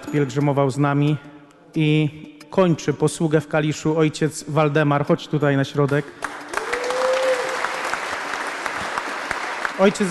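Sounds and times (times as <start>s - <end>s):
speech: 0.1s - 6.3s, 9.8s - 10.0s
pilgrims applauding: 5.9s - 10.0s.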